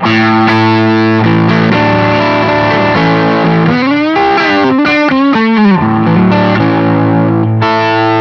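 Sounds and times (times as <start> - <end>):
distorted electric guitar lick on neck pickup: 0.0 - 8.1.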